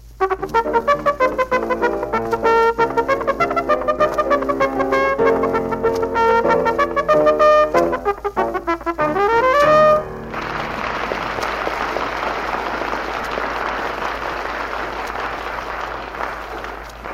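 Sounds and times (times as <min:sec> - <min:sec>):
stepped musical tones: 0:00.0 - 0:11.6
large audience clapping for an act: 0:00.2 - 0:17.1.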